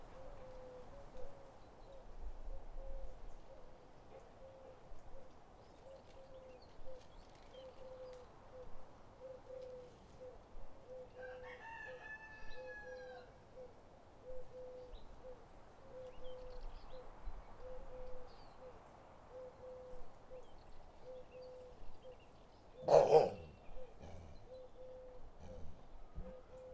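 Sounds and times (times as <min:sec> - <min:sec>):
birds: 0:00.0 - 0:26.7
rooster: 0:11.1 - 0:13.4
dog barking in the country: 0:22.8 - 0:24.4.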